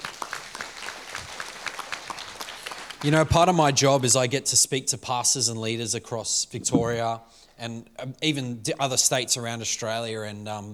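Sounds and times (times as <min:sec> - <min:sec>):
audience clapping: 0:00.0 - 0:03.6
speech: 0:03.0 - 0:10.7.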